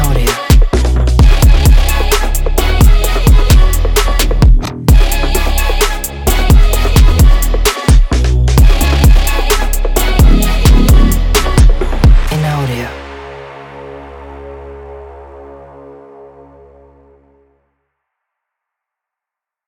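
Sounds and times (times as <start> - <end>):
Asian beat: 0.0 - 12.3.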